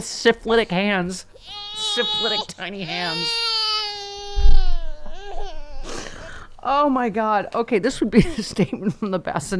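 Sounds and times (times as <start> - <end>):
speech: 0.0 - 3.5, 6.6 - 9.5
colicky baby crying: 1.4 - 6.2.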